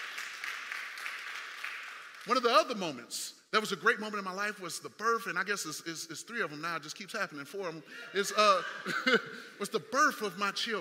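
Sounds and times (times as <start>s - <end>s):
audience clapping: 0.0s - 2.8s
speech: 2.2s - 10.7s
laughter: 7.9s - 9.7s.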